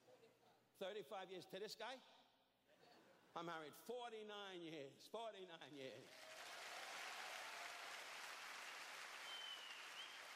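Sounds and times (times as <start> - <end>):
speech: 0.8 - 2.2, 3.4 - 6.2
audience applause: 6.0 - 10.3.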